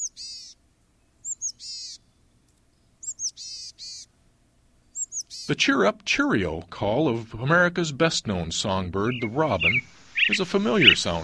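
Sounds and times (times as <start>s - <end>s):
speech: 5.5s - 11.2s
chickadee call: 9.1s - 11.2s.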